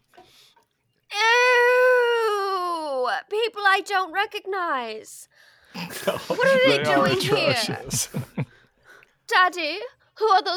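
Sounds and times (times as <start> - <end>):
girl screaming: 1.1 - 3.0
speech: 3.3 - 8.5, 9.3 - 10.5
laughter: 5.8 - 8.6.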